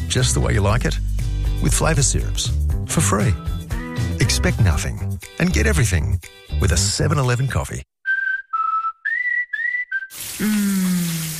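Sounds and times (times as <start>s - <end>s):
speech: 0.1s - 7.9s, 10.4s - 10.9s
person whistling a tune: 8.0s - 11.1s
shower running: 10.1s - 11.3s.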